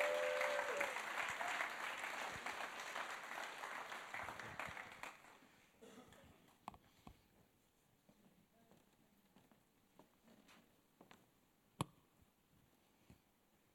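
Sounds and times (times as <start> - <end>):
audience applause: 0.0 - 5.4.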